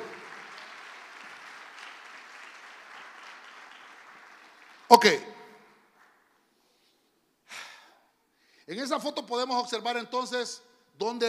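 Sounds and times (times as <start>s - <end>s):
audience clapping loudly: 0.0s - 6.4s
speech: 4.9s - 5.4s, 8.7s - 11.2s.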